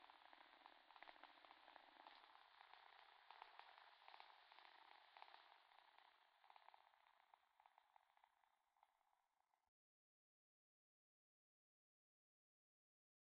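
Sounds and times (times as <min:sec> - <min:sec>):
noise: 0:00.0 - 0:09.0.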